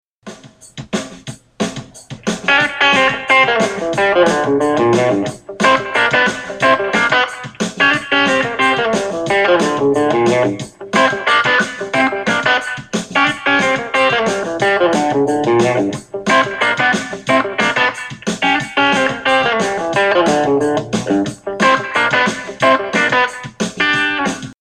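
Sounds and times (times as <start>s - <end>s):
funky country lick in G: 2.1s - 24.5s.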